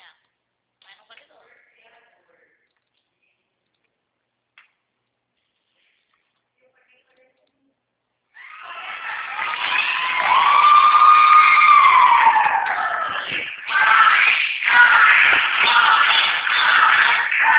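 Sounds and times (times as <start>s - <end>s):
women shouting and cheering in office: 8.4s - 17.5s.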